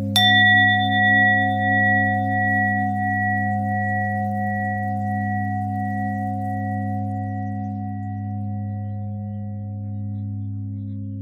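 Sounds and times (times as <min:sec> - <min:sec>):
bell: 0:00.2 - 0:11.1.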